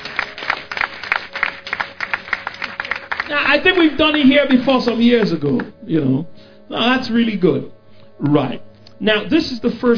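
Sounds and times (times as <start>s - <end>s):
audience applause: 0.0s - 4.6s
speech: 3.3s - 9.9s.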